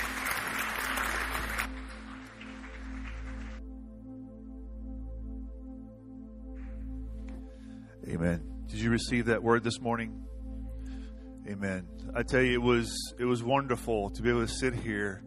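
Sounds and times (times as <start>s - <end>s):
audience clapping in praise: 0.0s - 3.6s
sustained keyboard chord: 0.0s - 15.2s
speech: 8.1s - 10.4s, 11.5s - 15.2s.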